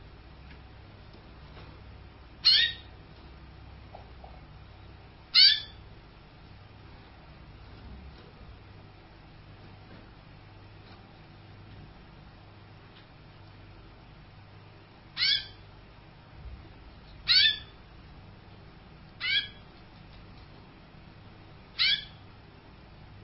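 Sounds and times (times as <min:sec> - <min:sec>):
canary song with high whistles, buzzy rattles and trills: 0:02.3 - 0:03.0, 0:05.2 - 0:06.0, 0:15.0 - 0:15.8, 0:17.2 - 0:17.8, 0:19.1 - 0:19.8, 0:21.7 - 0:22.3.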